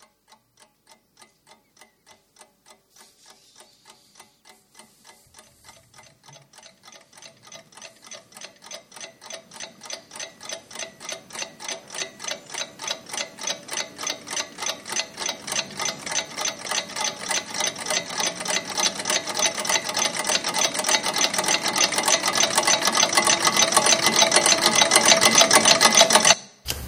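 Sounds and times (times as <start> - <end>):
alarm clocks ticking: 0.0 - 26.6.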